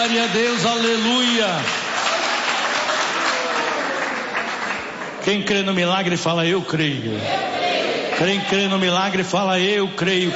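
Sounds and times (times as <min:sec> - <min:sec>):
speech: 0:00.0 - 0:01.8, 0:05.2 - 0:07.5, 0:08.2 - 0:10.3
audience clapping hands: 0:00.0 - 0:05.6.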